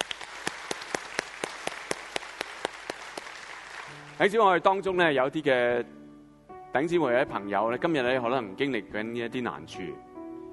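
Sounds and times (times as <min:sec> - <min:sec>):
audience applause: 0:00.0 - 0:04.4
speech: 0:04.2 - 0:06.0, 0:06.7 - 0:10.5.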